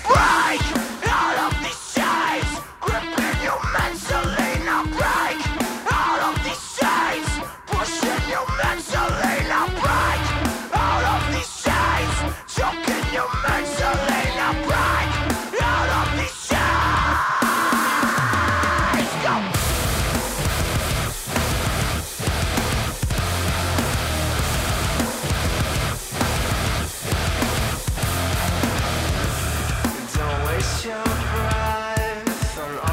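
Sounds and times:
shouted, yelling vocal: 0.0s - 19.6s
heavy distorted guitars: 0.0s - 32.9s
loud nu metal track: 0.0s - 32.9s
pounding drums: 0.0s - 32.9s.

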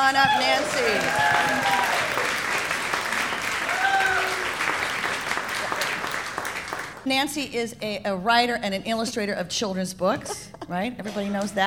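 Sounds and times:
speech: 0.0s - 1.6s, 7.0s - 11.6s
high whoops: 0.0s - 5.9s
audience of women applauding: 0.0s - 7.1s.

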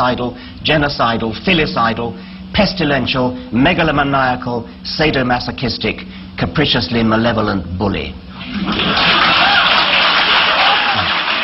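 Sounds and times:
speech: 0.0s - 9.6s
large audience cheering and laughing: 8.4s - 11.4s
clapping: 8.7s - 11.4s.

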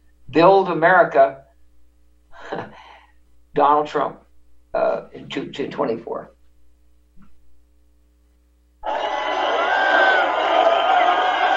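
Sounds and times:
speech: 0.3s - 1.4s, 3.6s - 6.4s
crowd cheering at a rally: 8.8s - 11.5s.

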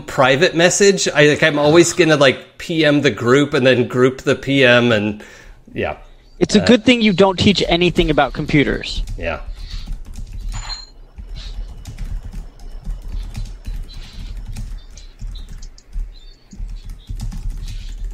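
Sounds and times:
speech: 0.2s - 9.5s
intense typing: 7.6s - 18.1s.

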